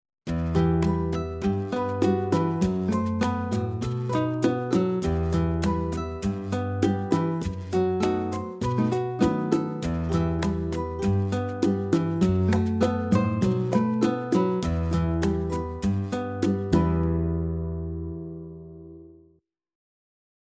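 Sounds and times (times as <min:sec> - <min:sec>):
African rumba music: 0:00.3 - 0:18.7.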